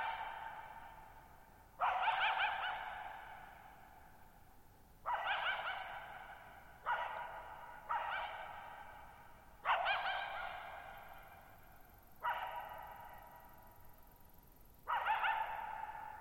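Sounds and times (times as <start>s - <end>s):
coyote barking: 0.0s - 1.1s, 1.8s - 4.0s, 5.0s - 11.6s, 12.2s - 13.8s, 14.8s - 16.1s.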